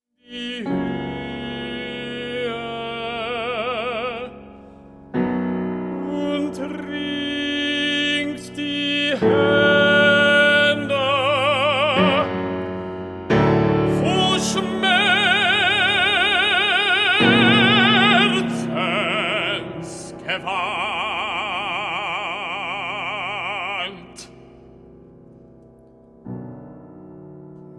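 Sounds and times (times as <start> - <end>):
piano accompanying a song cycle: 0.0 - 27.7
person singing a song cycle: 0.2 - 4.5, 5.9 - 12.6, 13.4 - 24.5.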